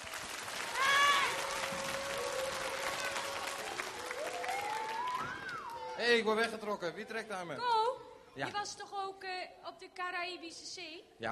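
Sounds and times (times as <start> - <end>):
audience applause: 0.0 - 6.4
speech: 6.0 - 11.2.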